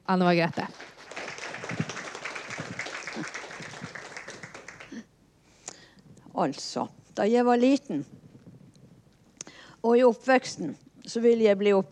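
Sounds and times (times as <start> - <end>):
speech: 0.1 - 0.9, 6.4 - 8.2, 9.8 - 11.9
audience applause: 0.6 - 5.0.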